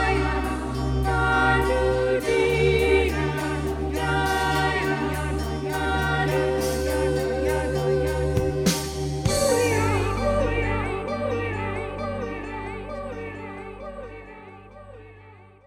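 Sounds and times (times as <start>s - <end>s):
atmospheric ambient female voices: 0.0s - 15.3s.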